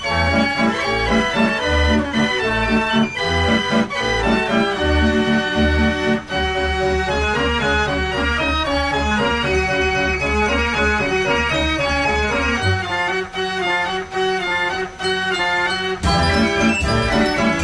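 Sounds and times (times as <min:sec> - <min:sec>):
fair organ playing a busy tune: 0:00.0 - 0:17.6.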